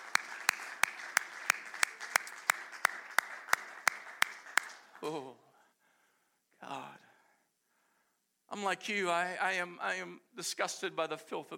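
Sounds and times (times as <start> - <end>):
audience clapping hands: 0.0 - 5.3
speech: 5.0 - 5.4, 6.6 - 7.0, 8.5 - 11.5.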